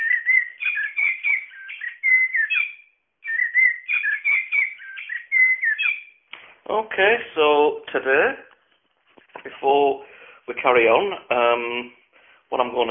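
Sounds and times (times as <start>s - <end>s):
toy bird playing a blackbird call: 0.0s - 6.2s
speech: 6.7s - 8.5s, 9.4s - 12.9s.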